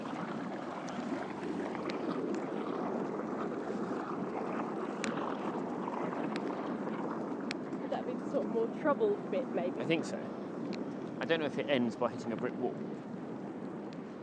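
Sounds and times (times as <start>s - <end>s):
water or air spurting out: 0.0s - 14.2s
faint sharp ticks and pops: 5.0s - 5.2s, 6.3s - 6.6s, 7.4s - 7.9s, 10.6s - 11.3s, 13.6s - 14.2s
speech: 8.4s - 10.4s, 11.3s - 13.2s.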